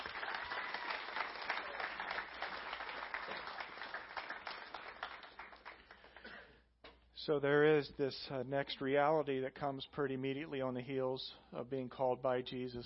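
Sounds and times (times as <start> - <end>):
audience applause: 0.0 - 6.2
speech: 7.2 - 12.8.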